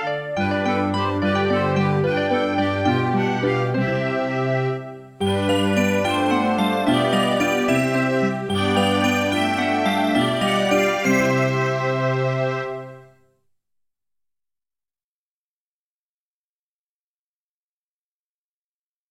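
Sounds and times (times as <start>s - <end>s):
music: 0.0s - 13.6s.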